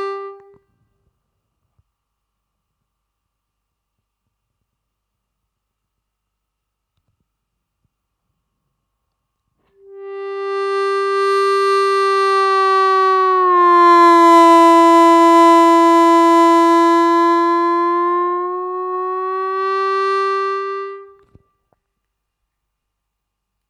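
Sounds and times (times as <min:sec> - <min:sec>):
harmonica bend practice track: 0:09.8 - 0:21.2.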